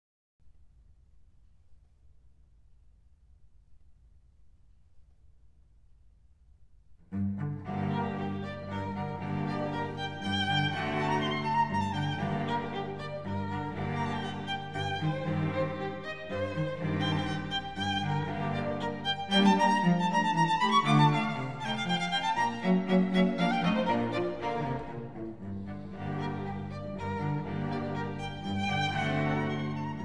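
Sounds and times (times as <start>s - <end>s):
string quartet playing a scherzo: 7.1s - 30.0s.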